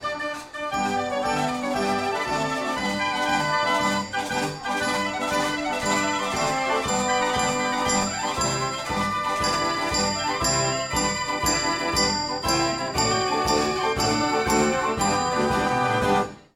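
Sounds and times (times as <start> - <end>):
Dutch street barrel organ playing: 0.0 - 16.5.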